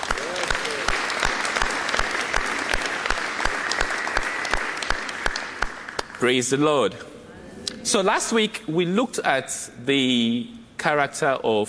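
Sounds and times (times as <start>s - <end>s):
audience clapping: 0.0s - 6.6s
speech: 6.2s - 7.1s, 7.8s - 11.6s.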